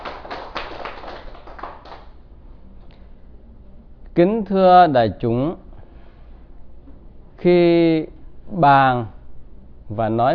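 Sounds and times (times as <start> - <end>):
audience clapping at a Buddhist dharma talk: 0.0 - 2.1
speech: 4.2 - 5.6, 7.4 - 9.2, 9.9 - 10.3.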